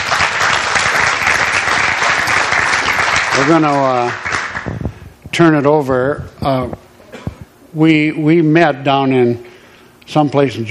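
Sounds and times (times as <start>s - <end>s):
audience applause at a religious gathering: 0.0s - 4.7s
speech: 3.4s - 4.8s, 5.4s - 6.8s, 7.7s - 9.5s, 10.1s - 10.6s.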